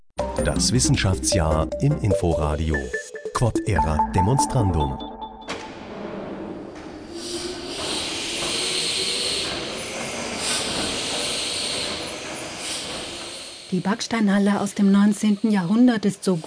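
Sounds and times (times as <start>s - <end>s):
speech: 0.4s - 5.1s, 13.7s - 16.4s
historic steam engine groaning and puffing: 5.8s - 16.4s.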